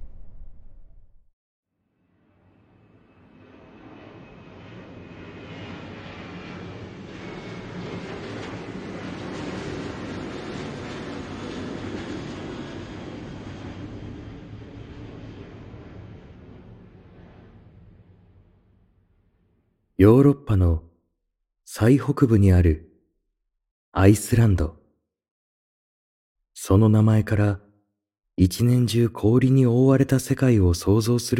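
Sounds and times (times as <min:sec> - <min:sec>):
airplane engine roar during takeoff: 0:02.4 - 0:18.5
speech: 0:20.0 - 0:20.9, 0:21.7 - 0:22.9, 0:23.9 - 0:24.8, 0:26.6 - 0:27.6, 0:28.4 - 0:31.3.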